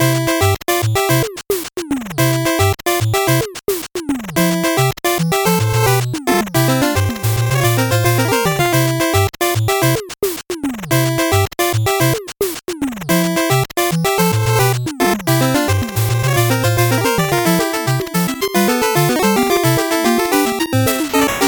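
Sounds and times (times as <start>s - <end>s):
8-bit background music: 0.0s - 1.4s, 2.0s - 3.6s, 4.2s - 10.1s, 10.8s - 21.4s.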